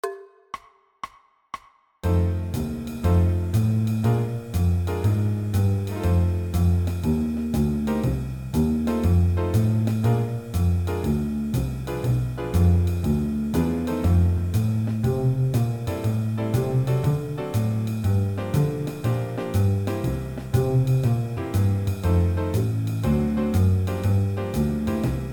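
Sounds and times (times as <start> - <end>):
blues music: 2.0 - 25.3.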